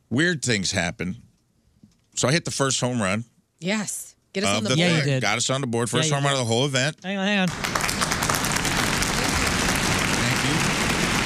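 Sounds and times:
speech: 0.1s - 1.3s, 2.2s - 7.8s
stadium crowd clapping: 7.5s - 11.2s.

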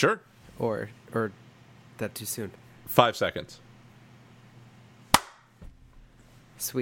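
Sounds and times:
speech: 0.0s - 1.4s, 2.0s - 3.6s, 6.6s - 6.7s
single hand clap: 5.2s - 5.4s.

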